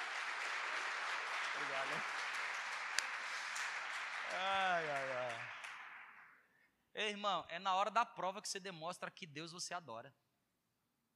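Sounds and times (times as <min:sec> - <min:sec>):
applause: 0:00.0 - 0:06.6
speech: 0:07.0 - 0:10.2.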